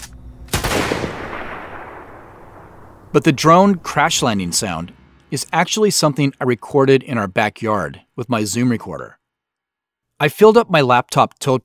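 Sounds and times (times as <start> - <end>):
low hum: 0.0 - 8.2
rifle shot with long rumbling tail: 0.3 - 5.6
speech: 3.1 - 9.2, 10.2 - 11.6.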